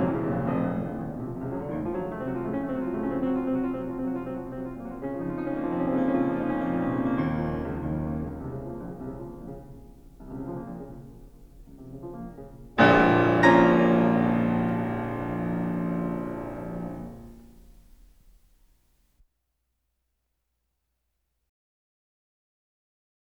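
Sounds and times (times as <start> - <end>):
fast piano sonata movement: 0.0 - 18.4.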